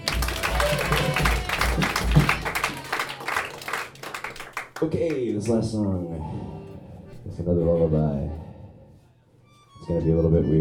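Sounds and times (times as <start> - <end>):
audience clapping: 0.0 - 5.6
speech: 4.8 - 6.6, 7.3 - 8.4, 9.9 - 10.6.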